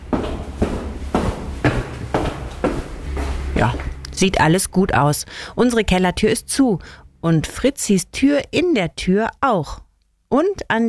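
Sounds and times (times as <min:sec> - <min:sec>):
footsteps walking down to cellar door: 0:00.0 - 0:04.3
speech: 0:03.6 - 0:10.8.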